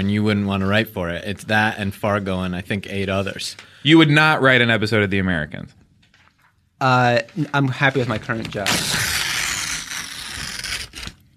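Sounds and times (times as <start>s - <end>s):
speech: 0.0s - 5.8s, 6.8s - 9.2s
paper contract being handled and torn: 7.8s - 11.3s.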